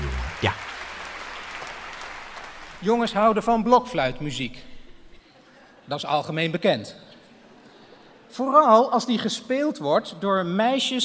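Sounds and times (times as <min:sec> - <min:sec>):
audience applause at a poetry reading: 0:00.0 - 0:03.6
speech: 0:00.4 - 0:00.6, 0:02.8 - 0:04.7, 0:05.9 - 0:07.1, 0:08.3 - 0:11.0.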